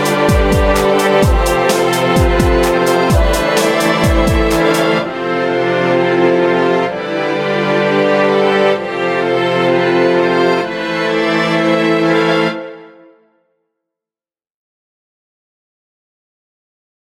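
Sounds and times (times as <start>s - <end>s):
instrumental music: 0.0s - 13.5s.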